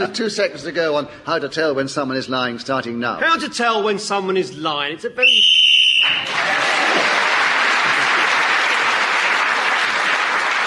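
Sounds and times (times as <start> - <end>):
speech: 0.0 - 6.6
shrill whistle blast ending the round: 5.2 - 6.4
loud sustained audience applause: 6.0 - 10.6.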